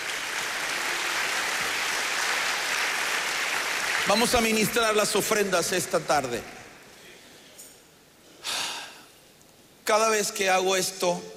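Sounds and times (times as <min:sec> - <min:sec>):
audience applauding: 0:00.0 - 0:06.5
speech: 0:04.0 - 0:06.6, 0:09.9 - 0:11.3.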